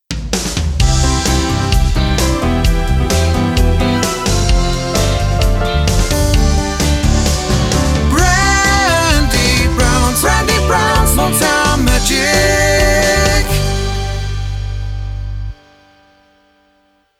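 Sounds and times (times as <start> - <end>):
Motown jingle: 0.9 - 16.1.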